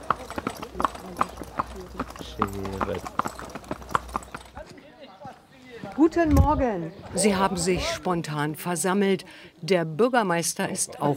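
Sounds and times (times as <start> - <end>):
horse-drawn carriage horse hooves clip-clopping at a trot: 0.0 - 5.4
speech: 6.1 - 11.1.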